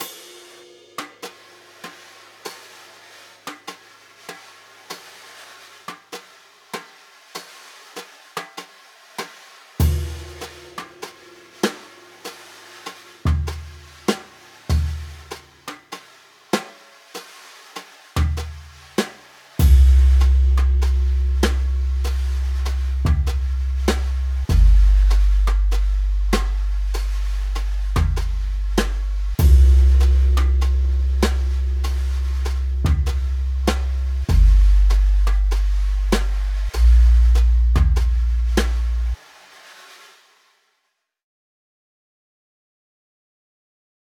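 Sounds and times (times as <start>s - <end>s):
drums: 0.0s - 40.4s
bass: 9.8s - 10.8s, 19.6s - 39.2s.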